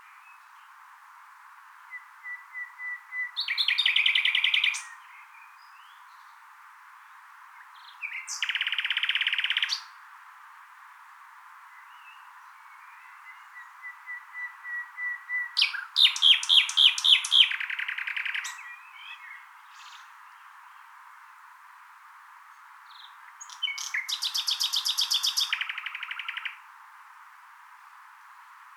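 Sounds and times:
common nightingale singing: 1.9 - 6.2, 7.6 - 10.0, 11.7 - 20.8, 22.9 - 26.6.

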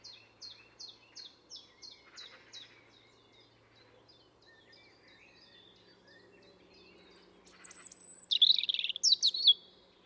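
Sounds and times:
European robin singing: 7.0 - 9.6.

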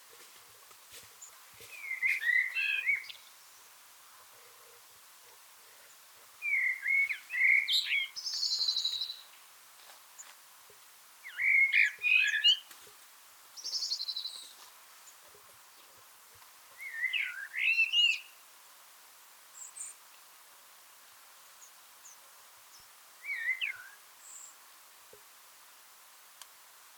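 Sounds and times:
steady hiss: 0.0 - 26.9
Eurasian blackbird song: 1.2 - 3.7, 5.8 - 9.4, 11.2 - 12.7, 13.6 - 16.0, 16.8 - 18.4, 21.6 - 24.6.

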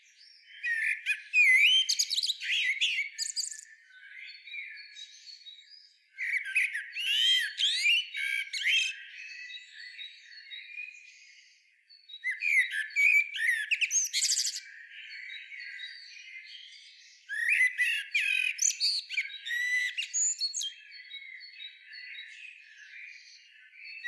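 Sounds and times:
common blackbird chattering song: 0.0 - 24.0.

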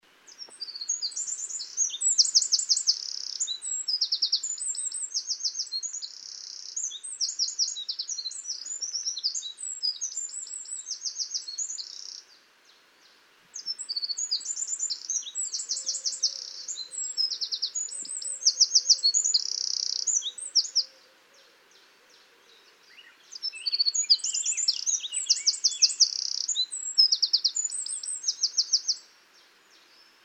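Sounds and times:
Eurasian wren singing trills: 0.3 - 12.2, 13.6 - 20.9, 22.9 - 29.1.

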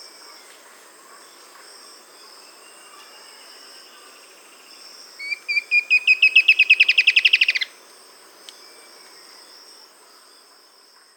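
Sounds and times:
bird singing accelerating trill: 2.7 - 7.7.

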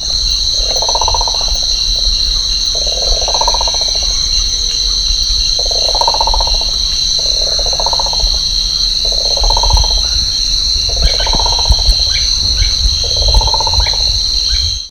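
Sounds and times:
high-pitched insect whine: 0.0 - 14.8
bird hollow calls: 9.0 - 14.8.

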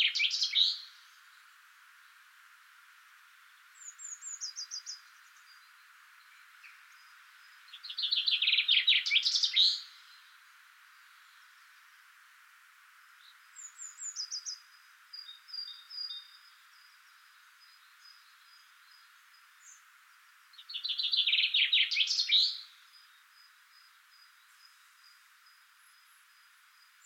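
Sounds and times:
common chaffinch Fringilla coelebs song trill with a flourish: 0.0 - 1.5, 3.7 - 10.4, 13.2 - 19.9, 20.5 - 26.2, 26.8 - 27.0.

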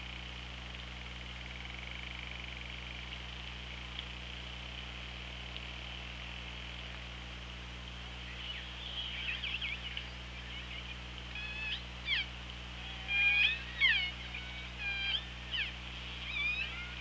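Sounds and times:
steady low underwater hum: 0.0 - 17.0
orca pulsed calls: 11.4 - 15.7.

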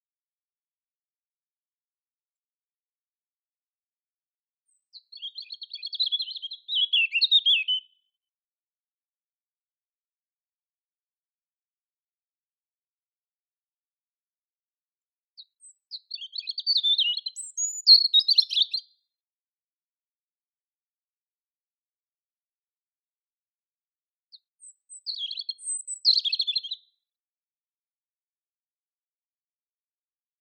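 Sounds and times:
European robin song: 4.7 - 8.2, 15.4 - 19.0, 24.3 - 27.0.

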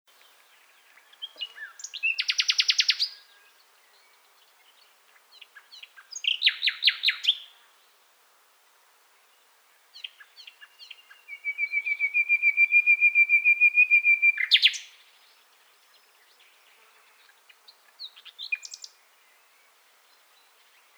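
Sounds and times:
common nightingale Luscinia megarhynchos song: 0.1 - 8.1, 9.1 - 20.9.

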